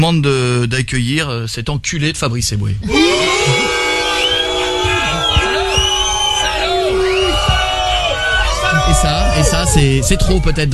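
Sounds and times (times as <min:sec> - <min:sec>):
speech: 0:00.0 - 0:03.8, 0:09.7 - 0:10.7
hoots and jeering shouts: 0:02.8 - 0:10.5
crowd booing: 0:02.8 - 0:10.7
long sliding whistles: 0:04.0 - 0:08.7.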